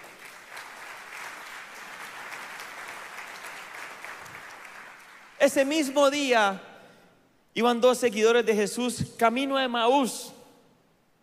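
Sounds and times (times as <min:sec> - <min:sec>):
audience applause: 0:00.0 - 0:05.4
speech: 0:05.4 - 0:06.7, 0:07.6 - 0:10.4.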